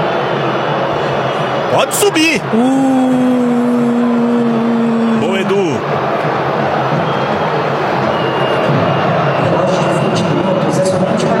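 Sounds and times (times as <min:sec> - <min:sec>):
Corinthians fans booing: 0:00.0 - 0:11.3
speech: 0:01.7 - 0:03.6.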